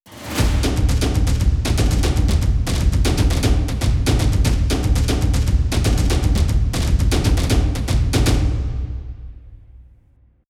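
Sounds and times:
war drums: 0.2 - 9.9.

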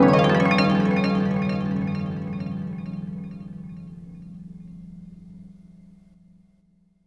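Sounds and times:
harp playing: 0.0 - 3.0.

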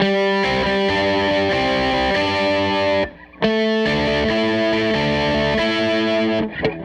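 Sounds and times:
Strat guitar loop: 0.0 - 6.8.

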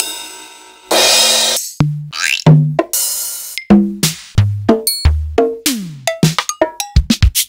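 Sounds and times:
Elka Drumstar 80 drum machine sliced samples: 1.8 - 7.4.

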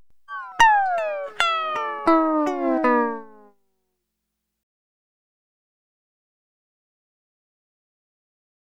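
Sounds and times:
dry lounge guitar in C: 0.5 - 3.5.

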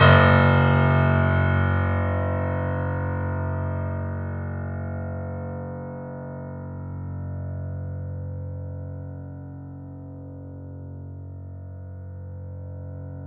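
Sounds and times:
sustained piano note F sharp: 0.0 - 8.6.

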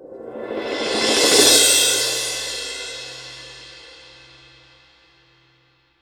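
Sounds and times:
cymbal swell: 0.3 - 5.0.

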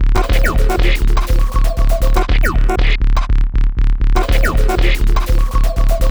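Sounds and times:
underground UK house and electro synth pad loop: 0.2 - 2.9, 4.2 - 6.0.

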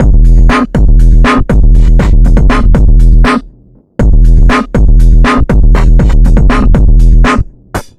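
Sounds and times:
swing hip-hop dance groove at 120 bpm: 0.0 - 7.9.

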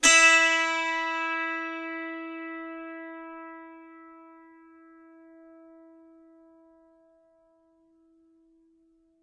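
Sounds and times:
dulcimer pluck on E4: 0.0 - 6.8.

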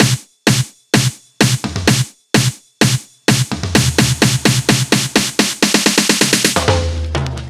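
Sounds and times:
club music drum fills: 0.0 - 7.4.

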